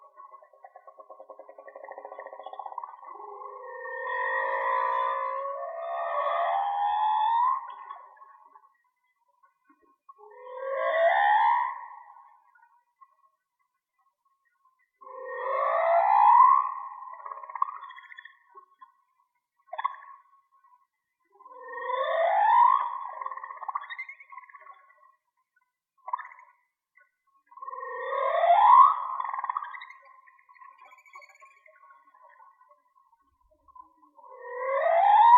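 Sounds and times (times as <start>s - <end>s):
whale song: 0.0s - 13.4s, 14.6s - 25.3s, 27.5s - 35.3s.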